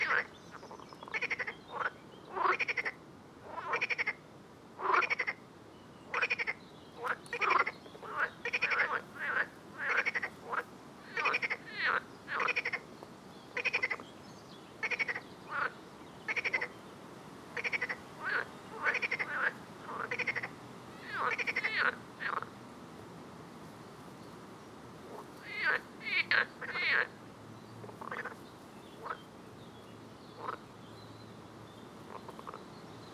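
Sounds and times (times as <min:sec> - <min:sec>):
chorus of frogs giving rattled pulse trains: 0:00.0 - 0:04.2, 0:04.8 - 0:05.4, 0:06.1 - 0:12.9, 0:13.5 - 0:14.1, 0:14.8 - 0:16.8, 0:17.6 - 0:22.6, 0:25.1 - 0:27.2, 0:27.8 - 0:28.4, 0:29.0 - 0:29.3, 0:30.4 - 0:30.8, 0:32.0 - 0:32.7
steady faint background hiss: 0:00.0 - 0:33.1.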